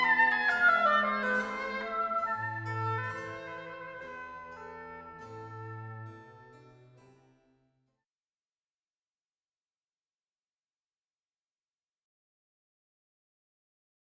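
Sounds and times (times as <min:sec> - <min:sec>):
oboe at a music school: 0:00.0 - 0:06.8.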